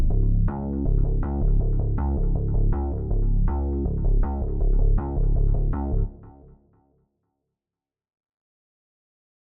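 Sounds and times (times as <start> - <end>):
bass guitar effects: 0.0 - 6.2.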